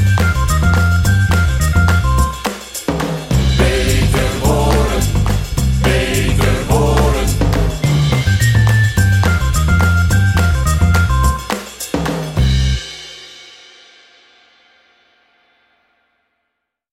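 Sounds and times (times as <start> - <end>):
bossa nova music: 0.0 - 12.8.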